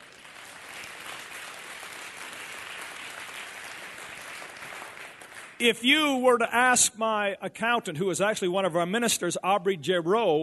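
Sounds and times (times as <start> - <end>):
audience applause, hand clapping: 0.0 - 5.6
speech: 5.6 - 10.4.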